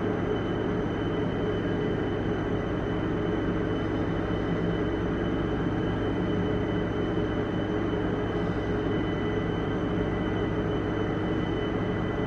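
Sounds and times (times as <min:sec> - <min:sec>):
industrial machinery in a sewage reclamation plant pump room: 0:00.0 - 0:12.2.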